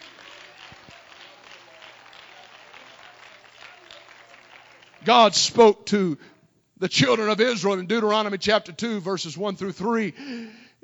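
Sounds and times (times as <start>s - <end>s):
audience clapping hands: 0.0s - 5.8s
speech: 5.0s - 10.8s.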